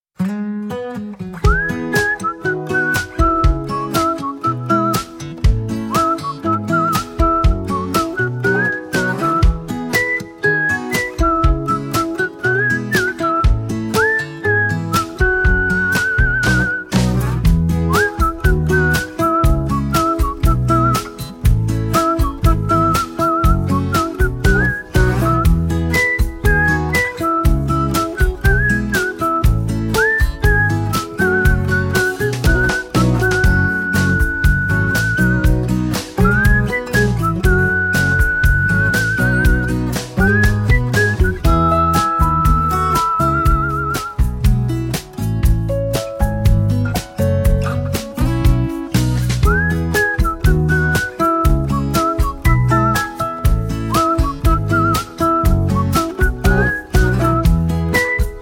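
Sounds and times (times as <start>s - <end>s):
whistled melody: 1.4s - 58.4s.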